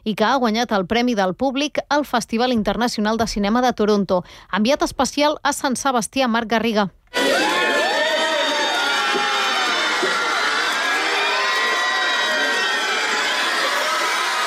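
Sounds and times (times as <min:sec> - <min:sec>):
speech: 0:00.0 - 0:07.5
crowd cheering Brad Pitt outside Hotel Maria Cristina in San Sebastián: 0:07.1 - 0:14.4.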